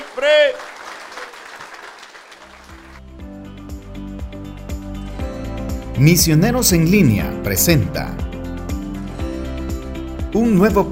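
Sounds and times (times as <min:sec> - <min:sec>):
audience applause: 0:00.0 - 0:03.0
speech: 0:06.0 - 0:08.2, 0:10.4 - 0:10.9.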